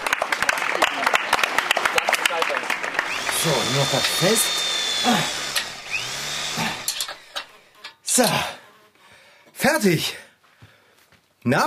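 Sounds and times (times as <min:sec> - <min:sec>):
audience applause: 0:00.0 - 0:06.1
speech: 0:03.4 - 0:05.4, 0:08.2 - 0:08.6, 0:09.8 - 0:10.2, 0:11.4 - 0:11.6.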